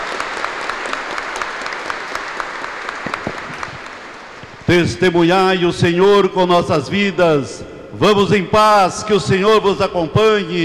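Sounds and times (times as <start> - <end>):
applause: 0.0 - 4.6
speech: 4.7 - 10.6.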